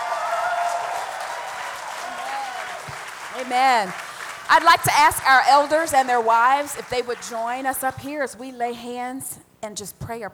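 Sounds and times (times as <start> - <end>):
scattered whoops and shouts: 0.0 - 3.0
audience applause: 0.0 - 7.6
speech: 3.4 - 10.3.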